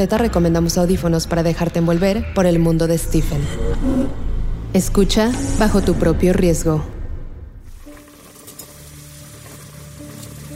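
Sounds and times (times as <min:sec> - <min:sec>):
speech: 0:00.0 - 0:07.0
eggs sizzling in a frying pan: 0:07.7 - 0:10.5.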